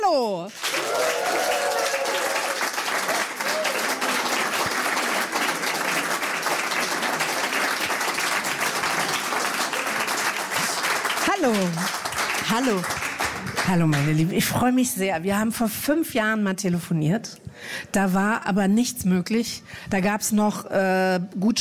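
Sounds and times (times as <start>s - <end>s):
speech: 0.1s - 1.0s, 11.4s - 11.9s, 12.5s - 13.1s, 13.7s - 21.6s
frenetic roaring applause from a large crowd: 0.5s - 14.2s
faint voices or cheers: 0.7s - 4.4s.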